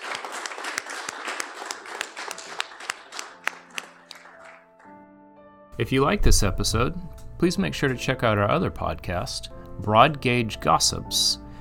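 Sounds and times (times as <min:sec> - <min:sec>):
audience applause: 0:00.0 - 0:05.0
speech: 0:05.8 - 0:11.4.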